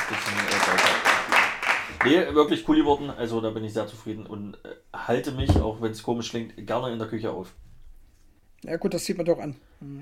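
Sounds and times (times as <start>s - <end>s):
applause: 0.0s - 2.2s
speech: 2.0s - 7.6s, 8.6s - 10.0s.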